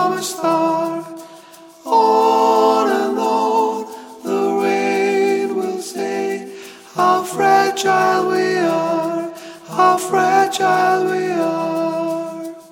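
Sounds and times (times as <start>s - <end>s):
soprano choir singing: 0.0s - 12.7s.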